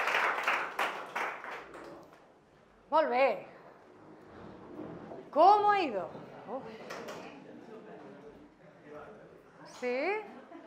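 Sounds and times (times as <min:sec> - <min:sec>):
group applause after a counting exercise: 0:00.0 - 0:02.3
speech: 0:02.9 - 0:03.5, 0:05.3 - 0:07.2, 0:09.8 - 0:10.3.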